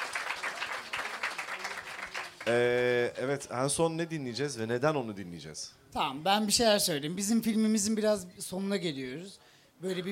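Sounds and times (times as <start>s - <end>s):
audience applause: 0.0s - 2.6s
speech: 2.5s - 10.0s.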